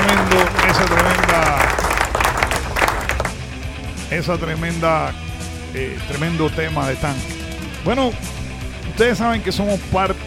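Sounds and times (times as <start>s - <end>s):
crowd applause: 0.0s - 3.4s
speech: 4.2s - 8.3s, 9.0s - 10.2s.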